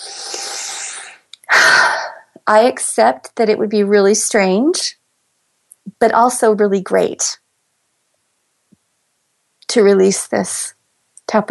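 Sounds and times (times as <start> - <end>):
big deep breath during a face-tapping exercise: 0.0 - 2.4
speech: 2.5 - 5.0, 5.9 - 7.4, 9.7 - 11.5.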